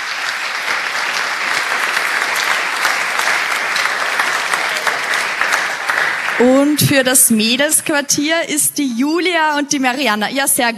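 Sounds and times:
applause: 0:00.0 - 0:07.6
speech: 0:06.4 - 0:10.7.

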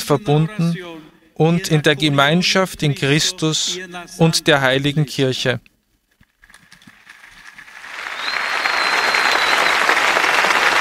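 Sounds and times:
speech: 0:00.1 - 0:05.7
crowd applause at harbour gathering: 0:06.5 - 0:10.7.

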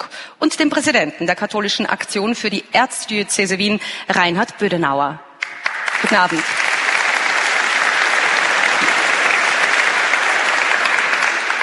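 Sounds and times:
speech: 0:00.0 - 0:05.2, 0:06.0 - 0:06.6
audience applause: 0:05.4 - 0:11.6.

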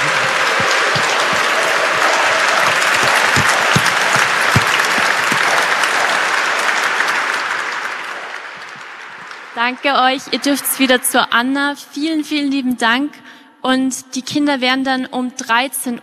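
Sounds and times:
audience applause in church: 0:00.0 - 0:11.0
speech: 0:09.7 - 0:16.0.

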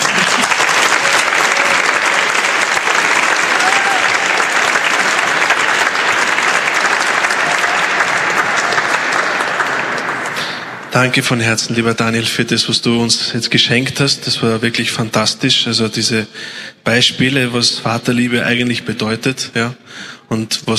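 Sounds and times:
audience applause: 0:00.0 - 0:10.9
speech: 0:11.0 - 0:20.7.

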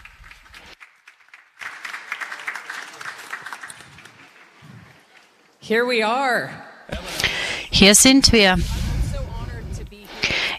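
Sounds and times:
loud applause from audience: 0:00.0 - 0:05.1
speech: 0:05.7 - 0:07.1, 0:07.8 - 0:08.8.

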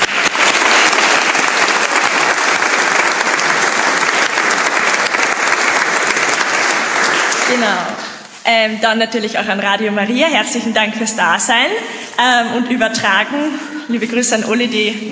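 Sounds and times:
audience applause: 0:00.0 - 0:08.2
speech: 0:07.5 - 0:07.9, 0:08.5 - 0:15.1.

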